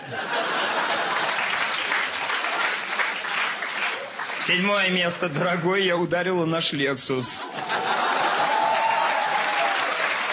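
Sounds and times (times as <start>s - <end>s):
speech: 0.0s - 0.4s, 4.5s - 7.6s
laughter: 0.0s - 1.9s, 7.2s - 9.5s
audience of women applauding: 0.6s - 4.8s, 7.7s - 10.3s.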